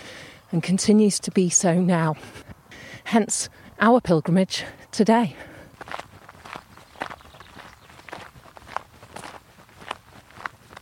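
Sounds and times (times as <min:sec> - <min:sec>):
speech: 0:00.5 - 0:06.0
footsteps on a track climbing up from an A road in Dorset: 0:05.4 - 0:10.8.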